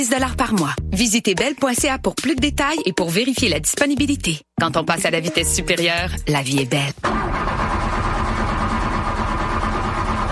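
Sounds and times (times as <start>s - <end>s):
speech: 0.0s - 7.5s
car engine cranking but failing to start: 7.0s - 10.3s.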